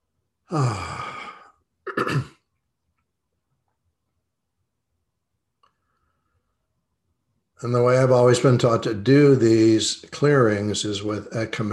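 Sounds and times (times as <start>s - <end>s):
speech: 0.5s - 0.9s, 7.6s - 11.7s
deep breathing during a heart-centred meditation: 0.5s - 1.7s.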